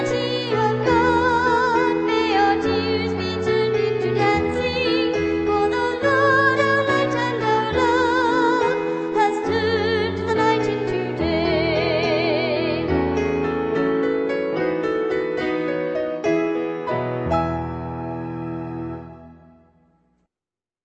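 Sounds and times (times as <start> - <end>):
soprano and bass melody: 0.0 - 19.8.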